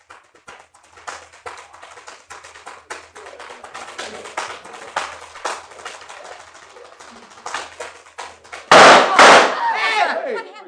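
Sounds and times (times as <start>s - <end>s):
quick crisp tap-dance clicks with no musical accompaniment: 0.0s - 8.9s
loud gunshot in a radio drama: 8.7s - 9.6s.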